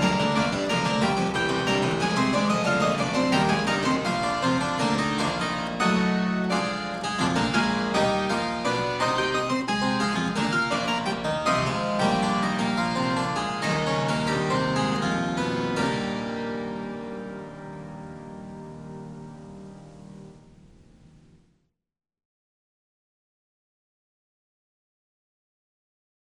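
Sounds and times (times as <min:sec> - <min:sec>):
fugue: 0:00.0 - 0:17.4.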